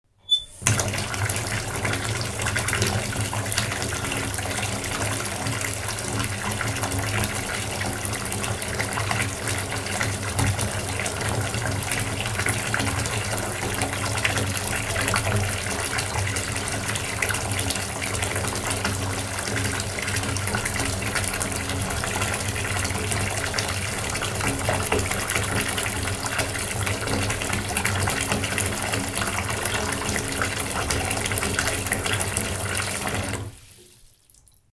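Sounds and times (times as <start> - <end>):
water: 0.3 - 34.7.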